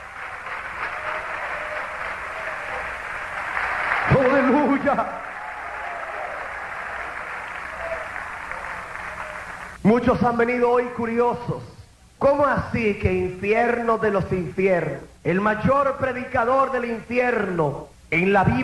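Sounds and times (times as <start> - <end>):
audience clapping hands: 0.0 - 9.8
speech: 4.2 - 5.2, 9.8 - 18.6.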